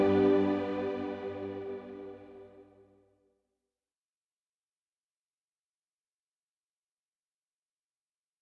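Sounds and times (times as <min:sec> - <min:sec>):
ambient music: 0:00.0 - 0:02.7.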